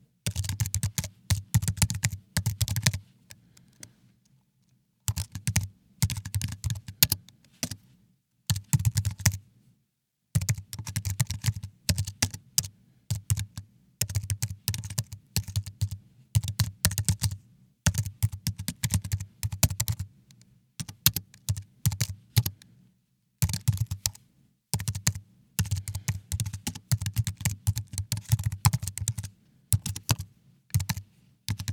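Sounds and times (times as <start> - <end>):
PC keyboard for Mac: 0.3 - 3.0, 5.1 - 7.8, 8.5 - 9.4, 10.4 - 20.1, 20.8 - 22.6, 23.4 - 24.2, 24.8 - 31.7.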